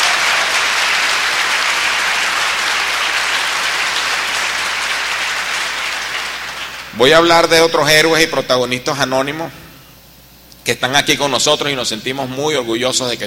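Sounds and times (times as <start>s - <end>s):
audience of students and professors clapping at a university symposium: 0.0s - 7.0s
speech: 7.0s - 9.6s, 10.6s - 13.2s.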